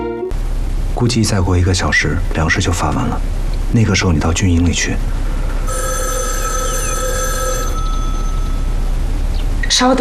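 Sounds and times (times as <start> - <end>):
low hum: 0.3 - 9.9
speech: 1.0 - 5.8, 9.8 - 9.9
telephone bell ringing: 5.6 - 8.8.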